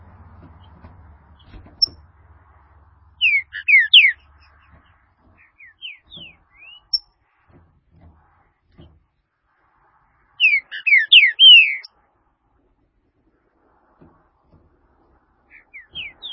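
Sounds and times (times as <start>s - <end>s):
green-winged saltator whistled song: 3.2s - 4.2s, 5.5s - 7.1s, 10.3s - 11.9s, 15.5s - 16.3s.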